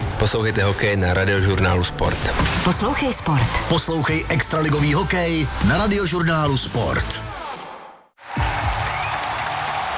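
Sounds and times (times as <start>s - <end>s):
speech: 0.2s - 7.3s
applause: 8.2s - 9.9s.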